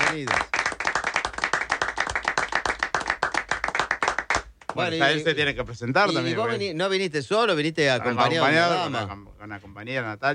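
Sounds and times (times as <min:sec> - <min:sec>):
audience applause: 0:00.0 - 0:04.5
speech: 0:00.1 - 0:00.5, 0:04.8 - 0:10.3.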